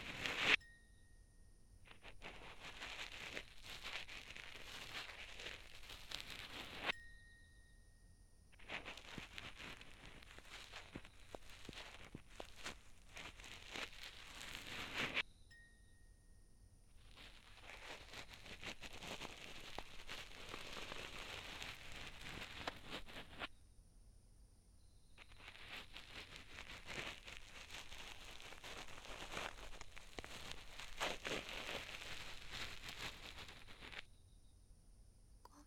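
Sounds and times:
cotton swab rubbing in left ear for ASMR: 0.0 - 0.6, 1.9 - 6.9, 8.6 - 15.2, 17.0 - 23.5, 25.2 - 34.1.

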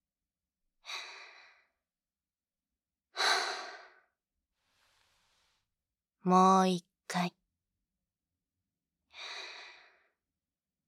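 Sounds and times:
slow deep breaths in and out: 3.2 - 5.7, 9.1 - 10.2
speech: 6.2 - 7.4.

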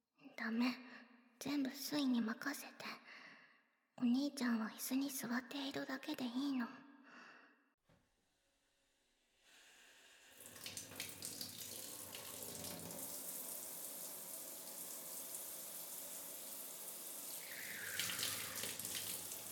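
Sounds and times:
speech: 0.4 - 3.0, 4.0 - 6.8
hot water being poured over someone: 9.6 - 19.4.

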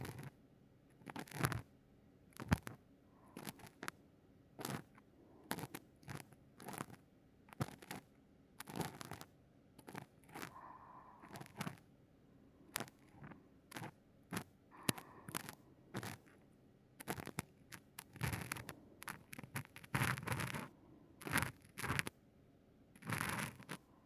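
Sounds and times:
careful ear cleaning of the right ear with both ends of a cotton swab: 0.0 - 0.3, 0.9 - 1.7, 2.3 - 2.8, 3.4 - 4.0, 4.6 - 11.8, 12.7 - 16.4, 17.0 - 22.1, 23.0 - 23.9.

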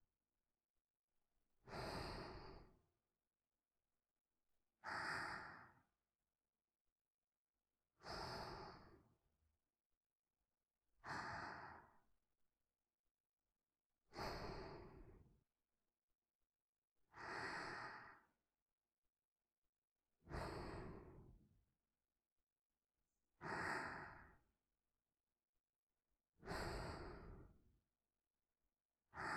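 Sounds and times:
person breathing in sleep: 1.6 - 2.9, 4.8 - 5.9, 8.0 - 9.2, 11.0 - 12.1, 14.0 - 15.3, 17.1 - 18.4, 20.2 - 21.4, 23.4 - 24.5, 26.4 - 27.7, 29.1 - 29.3.

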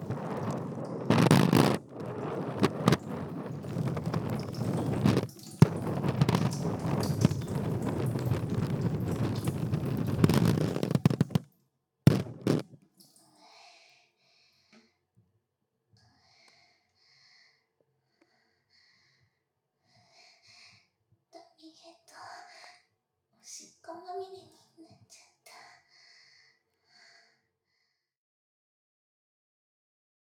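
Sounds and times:
urination sounds recorded on a dummy head microphone for ASMR: 0.0 - 11.5, 12.1 - 12.8.

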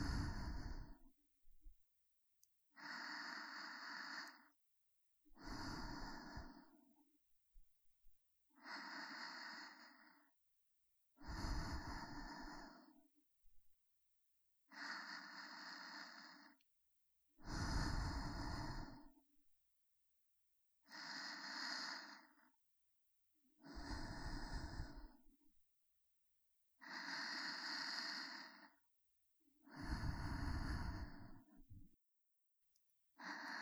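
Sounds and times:
breathing in the right and left ear: 0.0 - 1.1, 2.8 - 4.6, 5.3 - 7.0, 8.6 - 10.4, 11.2 - 13.1, 14.7 - 16.6, 17.4 - 19.2, 20.9 - 22.5, 23.6 - 25.3, 26.8 - 28.8, 29.6 - 31.8, 33.2 - 33.5.

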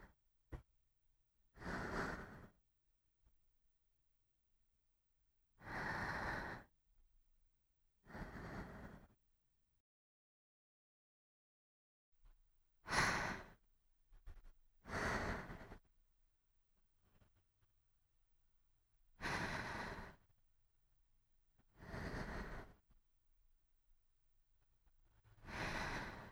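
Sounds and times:
sleeping breath: 1.6 - 2.6, 5.6 - 6.7, 8.1 - 9.2, 12.8 - 13.6, 14.8 - 15.9, 19.2 - 20.3, 21.7 - 22.8, 25.4 - 26.3.

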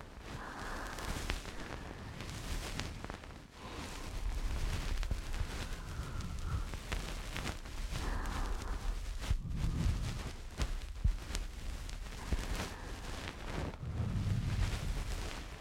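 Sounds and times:
bonten ear pick brushing in the right ear for sleep: 0.4 - 15.5.

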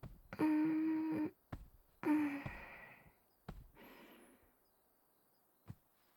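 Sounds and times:
gentle back and shoulder massage on a futon: 0.0 - 4.3.

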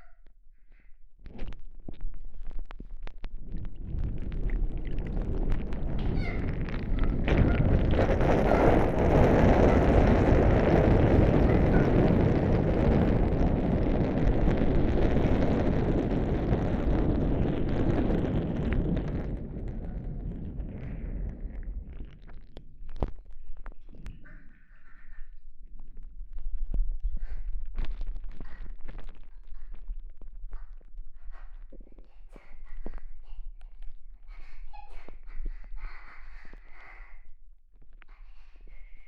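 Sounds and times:
urinating with microphone inside: 2.3 - 24.2.

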